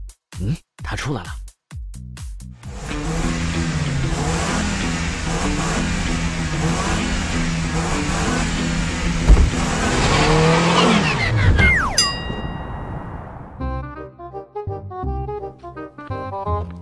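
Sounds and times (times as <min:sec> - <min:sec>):
speech: 0:00.4 - 0:01.4
car engine revving while drifting: 0:02.6 - 0:12.0
bump: 0:09.1 - 0:13.7.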